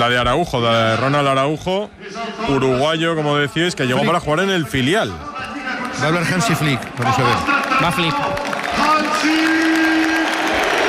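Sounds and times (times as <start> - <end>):
speech: 0.0 - 5.4, 6.0 - 9.6
football stadium crowd cheering and applauding at the Camp Nou: 5.4 - 10.8.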